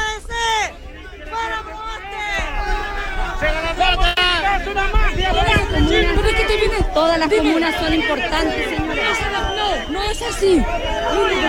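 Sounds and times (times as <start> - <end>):
crowd shouting at press conference: 0.0 - 11.4
speech: 7.2 - 11.4.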